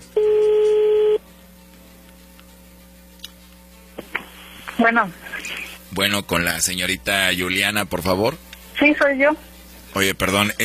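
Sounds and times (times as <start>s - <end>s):
humming phone line: 0.0s - 1.3s
telephone tone while a call is dialed: 0.2s - 1.2s
speech: 4.8s - 5.3s, 6.0s - 10.6s.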